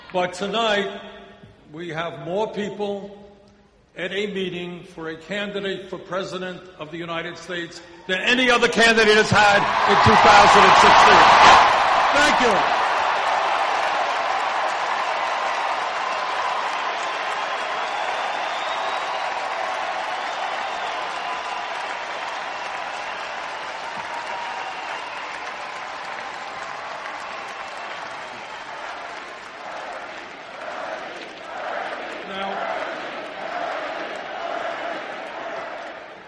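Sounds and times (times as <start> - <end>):
speech: 0.1 - 3.2, 4.0 - 12.8
enthusiastic rally crowd cheering: 8.5 - 36.2.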